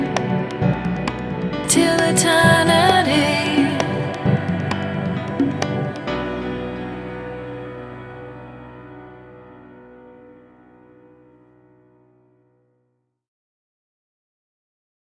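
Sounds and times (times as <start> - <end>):
acoustic music: 0.0 - 11.8.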